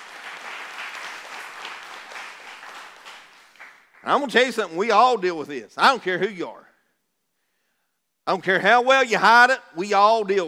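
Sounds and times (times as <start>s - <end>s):
audience clapping: 0.0s - 4.4s
speech: 4.0s - 6.7s, 8.3s - 10.4s.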